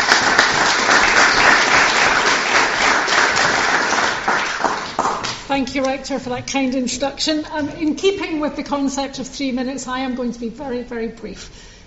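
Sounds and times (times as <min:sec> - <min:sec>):
audience applause: 0:00.0 - 0:05.4
speech: 0:05.5 - 0:11.7.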